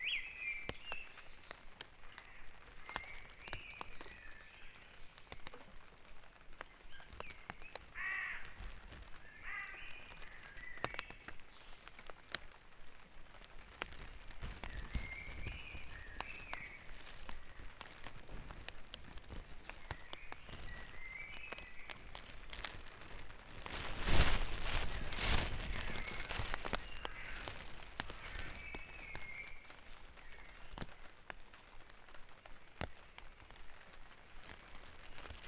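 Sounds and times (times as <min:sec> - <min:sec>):
birds singing in a dawn chorus: 0:00.0 - 0:05.5, 0:06.7 - 0:12.0, 0:14.4 - 0:30.9.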